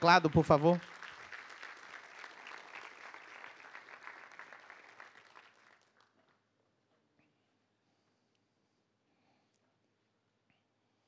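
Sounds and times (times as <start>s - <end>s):
speech: 0.0s - 1.0s
audience applauding: 0.0s - 6.4s.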